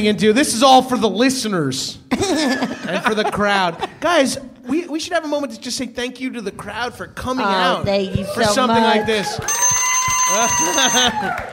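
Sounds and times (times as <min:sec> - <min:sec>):
speech: 0:00.0 - 0:11.5
laughter: 0:02.1 - 0:04.4
alarm timer ringing with high electronic tone: 0:09.5 - 0:11.3.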